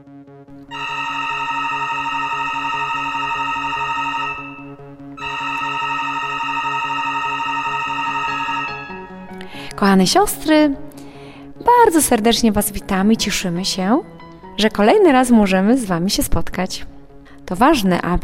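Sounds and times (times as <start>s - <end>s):
monastery gate electric bell ringing: 0.7s - 9.5s
speech: 9.8s - 10.9s, 11.7s - 16.9s, 17.5s - 18.2s.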